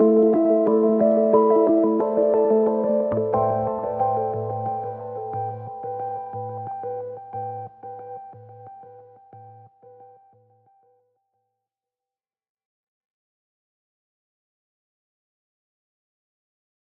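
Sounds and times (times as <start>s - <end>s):
synths: 0.0s - 8.4s.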